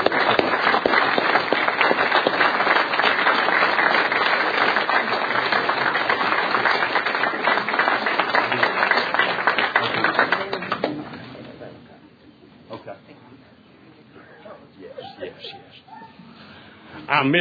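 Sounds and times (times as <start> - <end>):
crowd clapping for a law enforcement team: 0.0 - 11.1.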